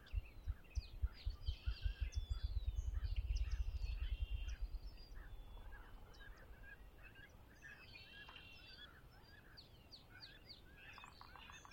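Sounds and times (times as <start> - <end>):
dawn bird chorus at Conner's Lake: 0.0 - 11.7
deep rapid fluttering throb: 0.4 - 6.0.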